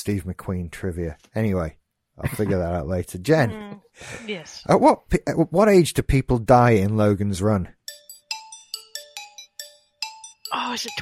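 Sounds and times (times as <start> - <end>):
speech: 0.0 - 7.8, 10.7 - 11.0
quiz buzzer electronic chime melody: 7.9 - 11.0.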